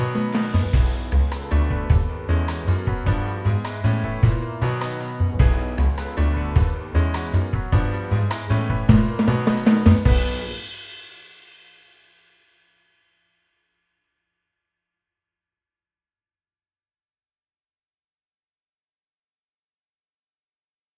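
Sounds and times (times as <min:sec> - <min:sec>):
big and bright hybrid sound: 0:00.0 - 0:10.8.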